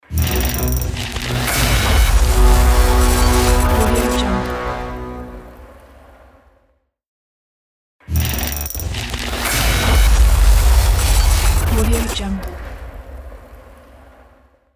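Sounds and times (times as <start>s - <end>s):
fiery glitch explosion logo: 0.6s - 5.6s, 9.6s - 13.3s.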